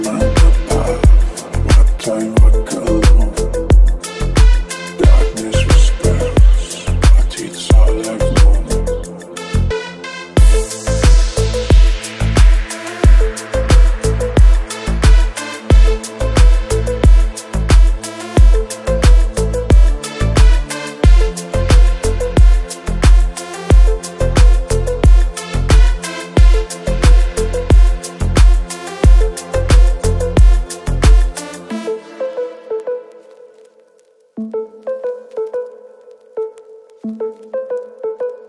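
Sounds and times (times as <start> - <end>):
boosted bass: 0.0 - 9.7, 10.4 - 31.4.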